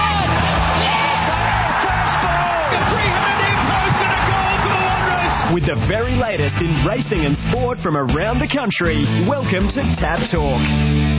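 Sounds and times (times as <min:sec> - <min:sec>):
racecourse crowd roaring: 0:00.0 - 0:06.0
speech: 0:05.6 - 0:11.0.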